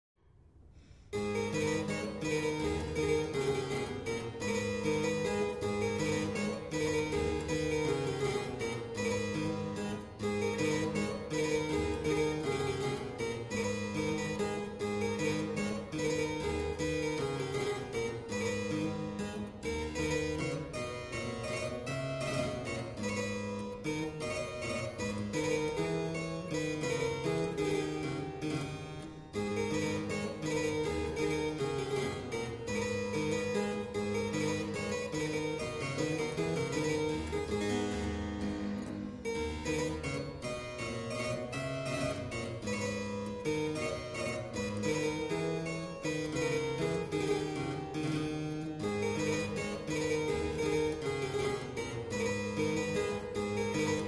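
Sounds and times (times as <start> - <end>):
minuet: 1.2 - 54.0.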